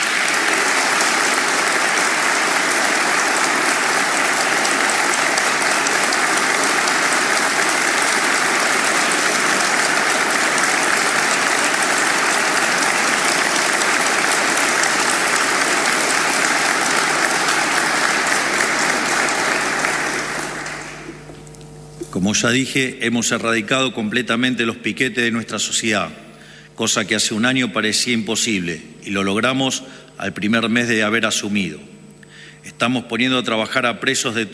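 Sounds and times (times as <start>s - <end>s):
strong audience applause: 0.0s - 21.3s
speech: 22.3s - 32.0s, 32.6s - 34.5s.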